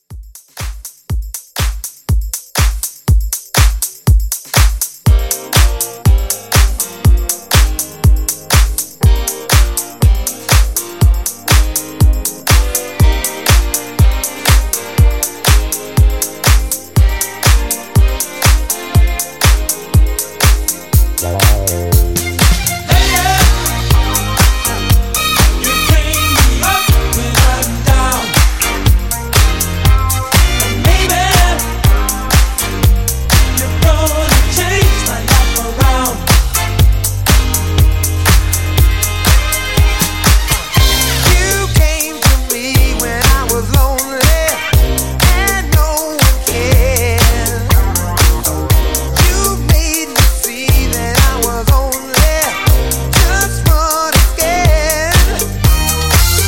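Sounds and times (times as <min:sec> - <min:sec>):
80s disco drum beat at 121: 0:00.0 - 0:56.4.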